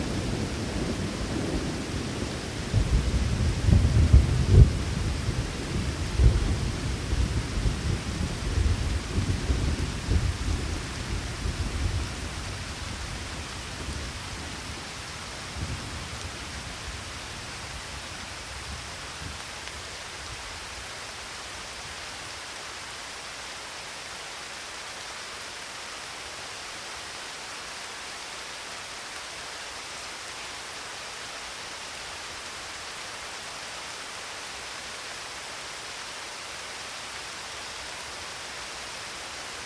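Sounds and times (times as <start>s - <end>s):
rain in the Alps: 0.0s - 39.6s
thunderstorm in the Alps: 2.7s - 6.6s.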